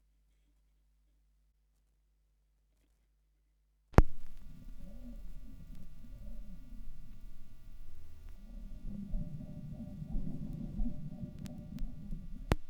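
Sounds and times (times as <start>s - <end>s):
vinyl record noise: 4.0s - 12.6s.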